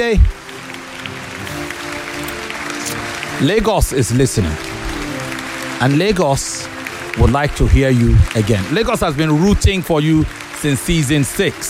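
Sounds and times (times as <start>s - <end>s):
speech: 0.0s - 0.4s, 3.4s - 4.7s, 5.8s - 11.6s
audience applause for a contestant in a televised debate competition: 0.0s - 11.6s.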